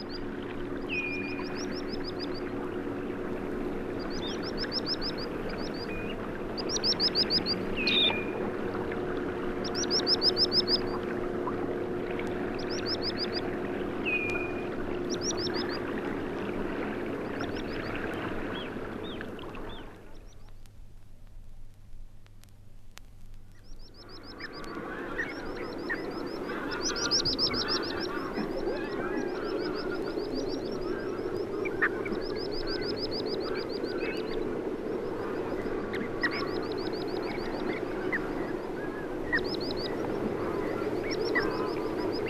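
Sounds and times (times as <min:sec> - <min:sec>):
steady low droning hum: 0:00.0 - 0:42.2
dunlin, common ringed plover and little ringed plover calls in flight: 0:00.9 - 0:02.6, 0:03.9 - 0:08.5, 0:09.5 - 0:11.1, 0:12.3 - 0:15.9, 0:17.2 - 0:20.5, 0:23.6 - 0:42.2.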